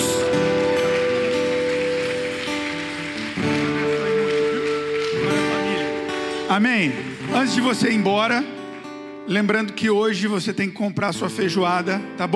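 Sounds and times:
audience applause: 0:00.0 - 0:09.1
speech: 0:06.6 - 0:08.5, 0:09.3 - 0:12.3.

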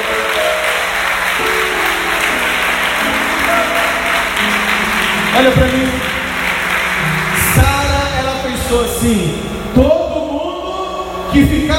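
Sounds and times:
audience applauding: 0:00.0 - 0:08.6
speech: 0:05.4 - 0:06.0, 0:08.7 - 0:10.0, 0:11.3 - 0:11.7.

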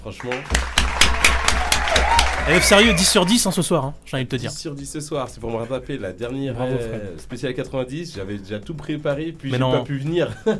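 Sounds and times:
one person clapping: 0:00.0 - 0:03.5
speech: 0:00.0 - 0:10.5.

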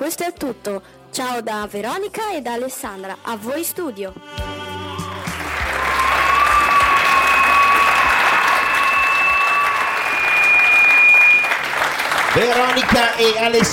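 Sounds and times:
speech: 0:00.1 - 0:04.5, 0:12.4 - 0:13.7
audience applause: 0:05.0 - 0:13.7.

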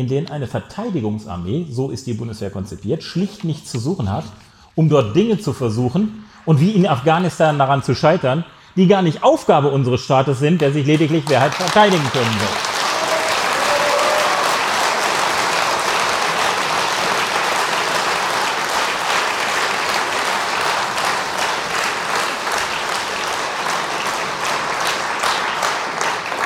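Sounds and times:
speech: 0:00.0 - 0:12.7
crowd outside applauding: 0:10.6 - 0:26.4.

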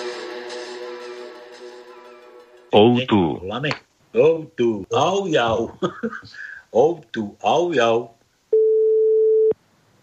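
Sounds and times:
speech: 0:02.7 - 0:08.2
telephone ringing tone: 0:08.5 - 0:09.5.

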